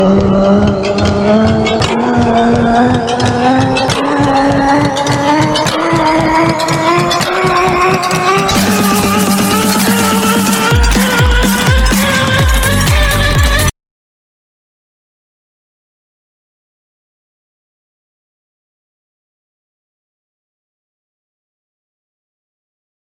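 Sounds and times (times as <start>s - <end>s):
hardest bass drop: 0.0s - 13.7s.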